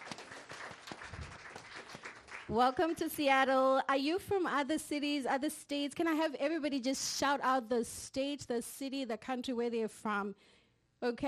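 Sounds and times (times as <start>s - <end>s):
crowd applauding: 0.0s - 3.0s
speech: 2.5s - 11.2s.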